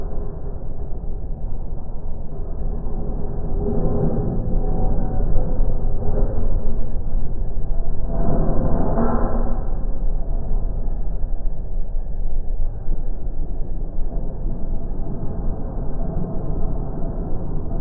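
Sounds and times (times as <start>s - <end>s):
dark sci-fi lair ambience in 5.1: 0.0s - 17.7s.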